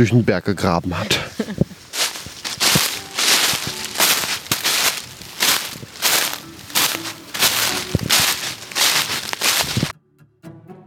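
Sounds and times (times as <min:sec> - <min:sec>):
speech: 0:00.0 - 0:01.4
laughter: 0:00.9 - 0:01.8
footsteps crunching through fallen leaves on a forest hillside: 0:01.6 - 0:09.9.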